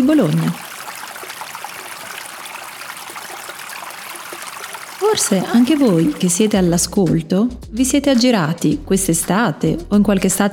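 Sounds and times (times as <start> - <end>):
speech: 0.0 - 0.6, 5.1 - 10.5
flowing stream water in mountain woods: 0.0 - 6.8.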